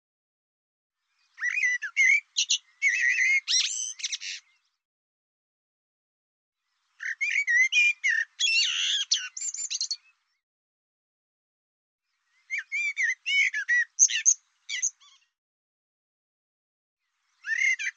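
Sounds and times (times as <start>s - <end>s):
bird song: 1.0s - 4.8s, 6.6s - 10.4s, 12.0s - 15.4s, 17.0s - 17.9s.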